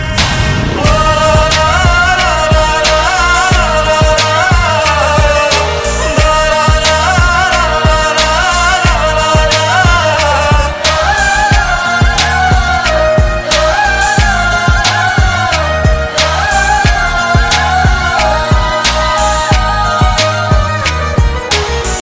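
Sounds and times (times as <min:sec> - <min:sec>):
instrumental music: 0:00.0 - 0:22.0.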